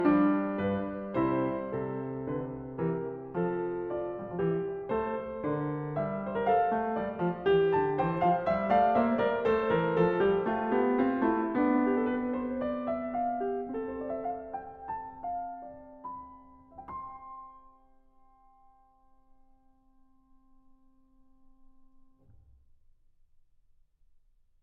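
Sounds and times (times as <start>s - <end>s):
fugue piece: 0.0s - 17.3s.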